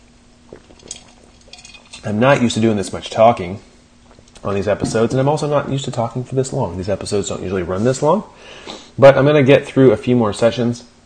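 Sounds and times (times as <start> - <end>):
low steady hum: 0.0 - 11.0
person sipping and swallowing a drink: 0.4 - 2.1, 4.0 - 4.4
glass clink: 0.8 - 2.1
speech: 2.0 - 3.7, 4.4 - 10.9.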